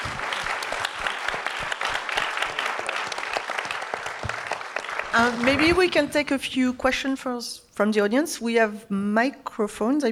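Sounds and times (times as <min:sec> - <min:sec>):
audience round of applause: 0:00.0 - 0:06.2
speech: 0:05.2 - 0:10.1.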